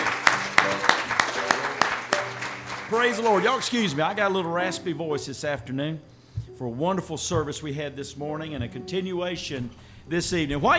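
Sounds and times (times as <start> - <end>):
church congregation clapping hands in praise: 0.0 - 4.8
speech: 2.9 - 10.7.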